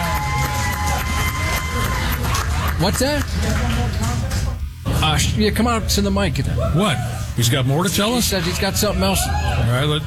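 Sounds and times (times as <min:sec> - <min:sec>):
audience applauding and cheering at a live show: 0:00.0 - 0:04.3
speech: 0:02.8 - 0:03.7, 0:05.0 - 0:10.0.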